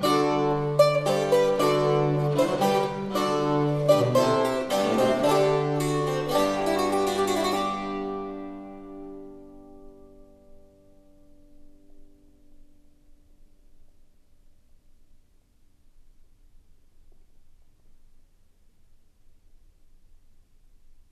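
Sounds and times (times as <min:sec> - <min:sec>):
bass playing: 0:00.0 - 0:10.0
cittern playing a galliard: 0:00.0 - 0:12.6.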